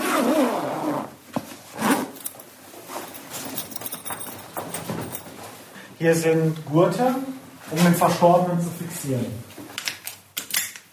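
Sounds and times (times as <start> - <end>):
body bag zipper rasping shut: 0.0 - 2.4
speech: 6.0 - 9.5.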